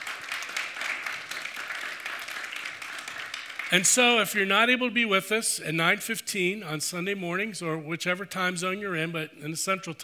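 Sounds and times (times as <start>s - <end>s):
audience applause: 0.0s - 3.9s
speech: 3.7s - 10.0s.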